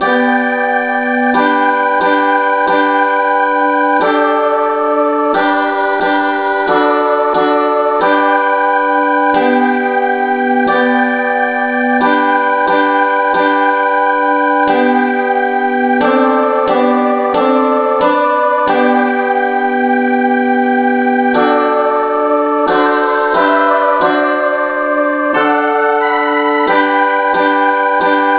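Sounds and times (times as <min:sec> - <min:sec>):
instrumental music in G: 0:00.0 - 0:28.3.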